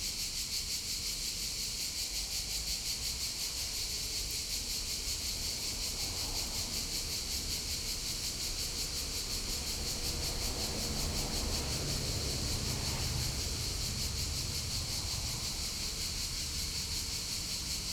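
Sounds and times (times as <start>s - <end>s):
crickets and cicadas calling in a city street in summer in Bologna: 0.0s - 17.9s.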